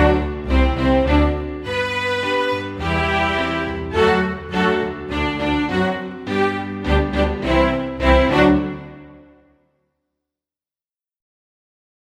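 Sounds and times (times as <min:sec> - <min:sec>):
strings duet: 0:00.0 - 0:09.6.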